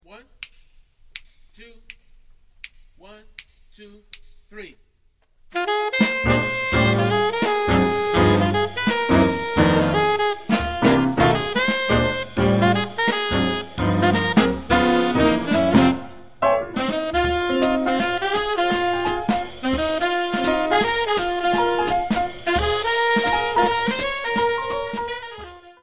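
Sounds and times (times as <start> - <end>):
music without bass: 5.7 - 25.8.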